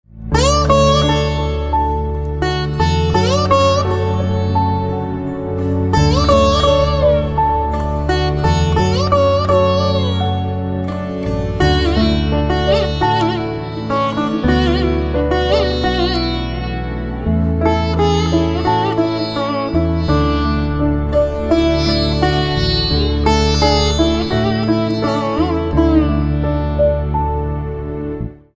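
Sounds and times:
veena: 0.1s - 28.5s.

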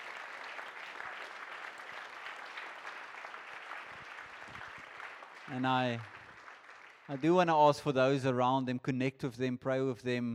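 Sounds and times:
church congregation applauding to welcome new members: 0.0s - 7.6s
speech: 5.5s - 6.2s, 7.1s - 10.3s.

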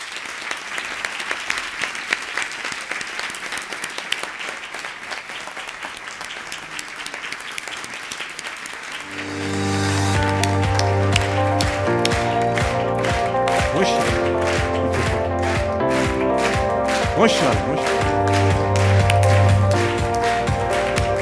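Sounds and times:
audience applause at a business coaching event: 0.0s - 21.2s
music: 9.0s - 21.2s.

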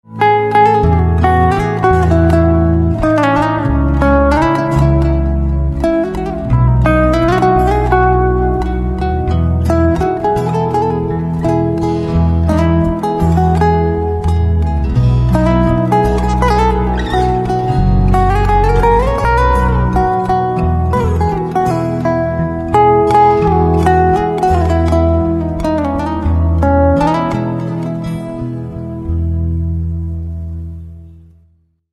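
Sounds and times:
guitar: 0.0s - 31.7s.

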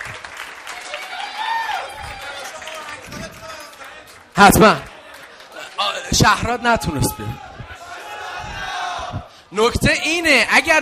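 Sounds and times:
audience applause: 0.0s - 6.6s
crowd voices: 3.0s - 9.4s
speech: 4.4s - 4.9s, 6.2s - 7.4s, 9.5s - 10.7s.

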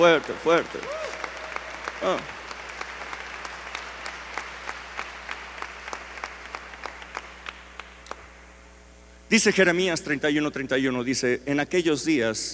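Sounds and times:
speech: 0.0s - 1.0s, 2.0s - 2.4s, 9.3s - 12.5s
audience applauding loudly: 0.0s - 8.3s.

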